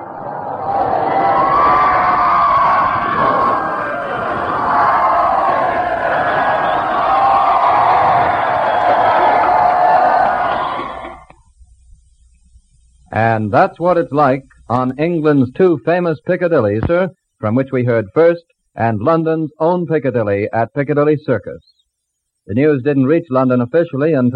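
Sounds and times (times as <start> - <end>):
crowd cheering: 0.0 - 11.4
speech: 13.5 - 21.8, 22.5 - 24.3.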